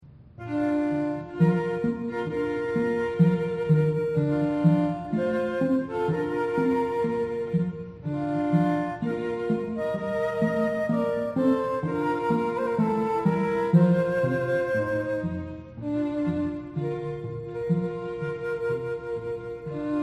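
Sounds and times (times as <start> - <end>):
trio playing wedding music: 0.4 - 20.0.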